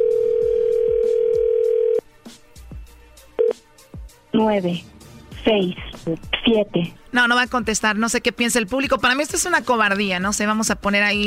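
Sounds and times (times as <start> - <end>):
telephone dial tone: 0.0 - 2.0
speech: 4.4 - 11.2.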